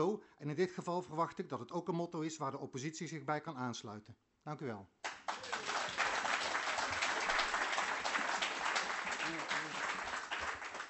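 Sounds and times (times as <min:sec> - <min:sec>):
speech: 0:00.0 - 0:05.0
applause in parliament chamber: 0:05.0 - 0:10.8.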